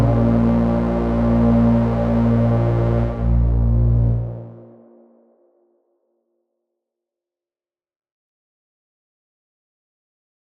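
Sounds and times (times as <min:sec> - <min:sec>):
French horn section: 0:00.0 - 0:04.5.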